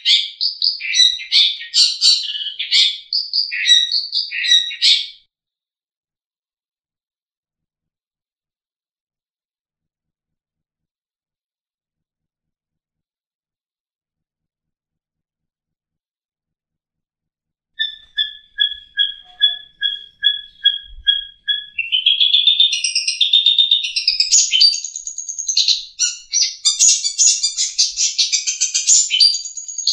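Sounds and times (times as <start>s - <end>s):
long-tailed shrike trilling: 0.0s - 5.2s, 17.8s - 29.9s.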